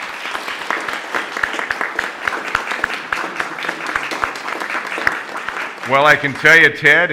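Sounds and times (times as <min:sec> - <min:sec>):
audience round of applause: 0:00.0 - 0:07.1
speech: 0:05.9 - 0:07.1.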